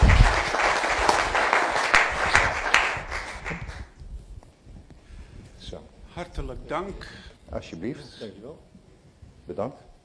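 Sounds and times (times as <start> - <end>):
audience applause: 0.0 - 3.9
speech: 6.5 - 8.8, 9.5 - 9.9.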